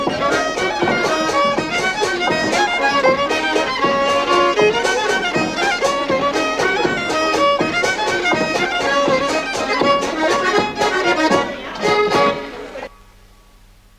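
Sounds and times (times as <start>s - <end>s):
drum kit: 0.0s - 12.2s
accordion: 0.0s - 12.9s
violin: 0.0s - 12.9s.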